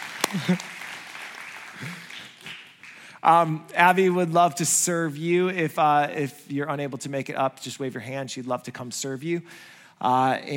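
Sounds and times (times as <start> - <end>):
audience clapping: 0.0 - 3.5
speech: 0.3 - 0.8, 1.8 - 2.6, 3.2 - 10.5.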